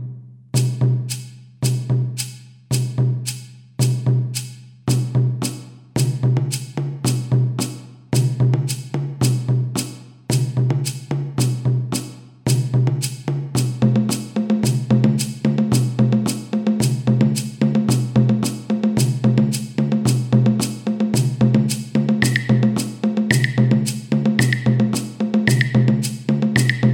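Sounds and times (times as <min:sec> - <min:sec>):
drum circle: 0:00.5 - 0:26.9.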